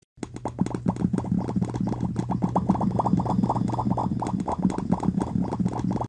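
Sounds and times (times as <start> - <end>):
popcat popping sound: 0.2 - 6.0.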